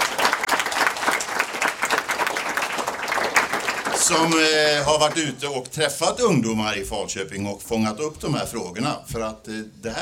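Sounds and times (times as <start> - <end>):
audience applause: 0.0 - 5.3
speech: 4.1 - 10.0.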